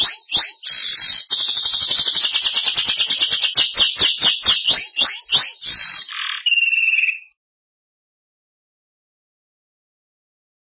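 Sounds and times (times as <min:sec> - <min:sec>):
Belgian canary singing: 0:00.0 - 0:07.4
speech: 0:00.1 - 0:01.8.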